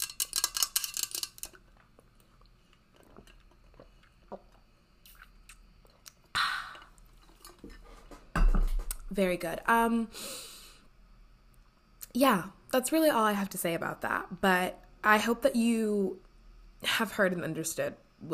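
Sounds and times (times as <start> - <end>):
big ice block in water: 0.0 - 1.8
person drinking water with big ice block: 1.7 - 8.1
speech: 9.2 - 10.5, 12.2 - 16.2, 16.8 - 18.3.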